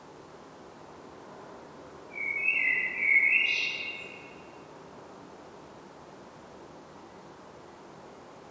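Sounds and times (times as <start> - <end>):
common blackbird song: 2.1 - 4.5.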